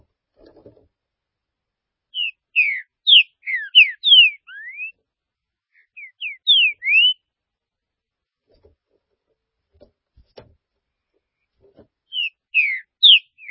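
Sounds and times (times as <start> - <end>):
green-winged saltator whistled song: 2.1 - 5.0, 5.8 - 7.2, 12.1 - 13.4.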